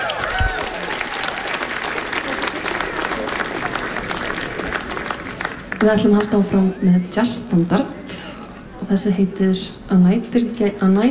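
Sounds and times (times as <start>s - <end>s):
jazz concert audience applause: 0.0s - 6.5s
speech: 5.8s - 8.0s, 8.9s - 11.0s.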